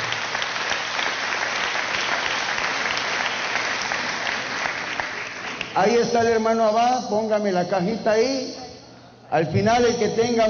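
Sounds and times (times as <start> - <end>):
audience applause: 0.0 - 5.9
speech: 5.8 - 8.6, 9.3 - 10.4.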